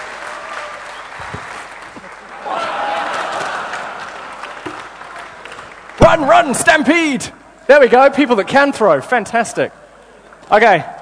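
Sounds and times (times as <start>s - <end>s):
audience applause: 0.0s - 6.5s
speech: 6.1s - 9.8s, 10.5s - 10.9s.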